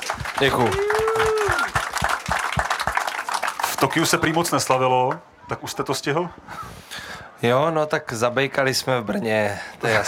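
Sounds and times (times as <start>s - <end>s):
crowd applause: 0.0s - 5.2s
speech: 0.4s - 1.3s, 3.9s - 6.7s, 7.4s - 10.0s
person cheering: 0.4s - 1.8s.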